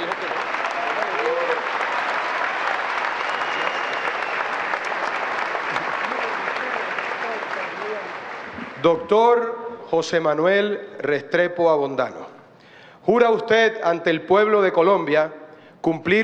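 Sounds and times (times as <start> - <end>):
large audience applause: 0.0 - 9.2
speech: 8.8 - 12.2, 13.0 - 16.2.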